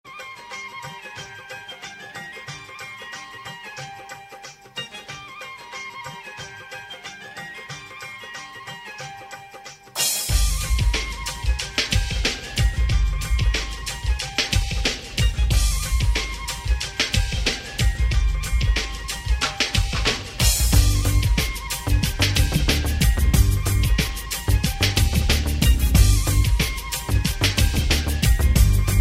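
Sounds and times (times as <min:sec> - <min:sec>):
rock music: 0:10.0 - 0:29.0.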